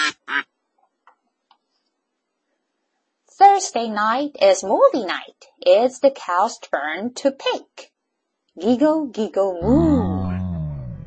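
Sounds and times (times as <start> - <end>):
duck quacking: 0.0 - 0.4
speech: 3.6 - 7.9, 8.6 - 10.0.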